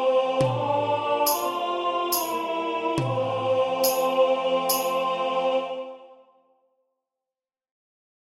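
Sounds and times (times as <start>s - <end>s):
tenor singing: 0.0s - 6.2s.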